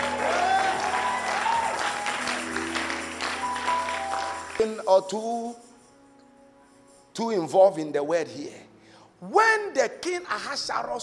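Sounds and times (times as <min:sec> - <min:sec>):
audience clapping and shouting: 0:00.0 - 0:04.8
speech: 0:04.6 - 0:05.7, 0:07.2 - 0:11.0.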